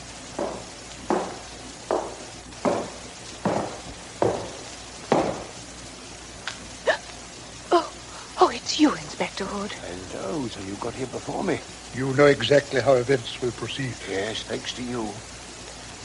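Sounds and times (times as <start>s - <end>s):
faint hiss: 0.0s - 16.0s
footsteps: 0.3s - 5.6s
speech: 9.4s - 15.3s.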